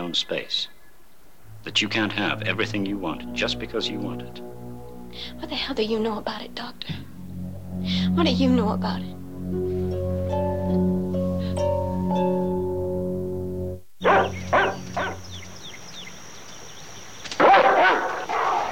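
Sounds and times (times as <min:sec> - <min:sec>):
speech: 0:00.1 - 0:00.8, 0:01.6 - 0:07.1, 0:07.8 - 0:10.8
sustained musical tone: 0:01.4 - 0:16.3
dog barking: 0:14.0 - 0:15.2, 0:17.4 - 0:18.7.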